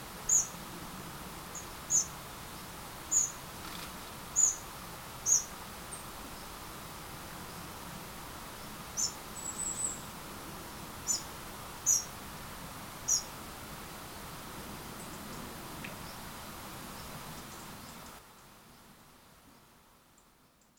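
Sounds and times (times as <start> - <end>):
background hiss: 0.0 - 20.7
Eurasian wren ticking calls: 0.3 - 0.6, 1.5 - 2.2, 3.1 - 6.5, 8.6 - 10.1, 11.0 - 12.2, 13.0 - 13.4, 16.9 - 18.5.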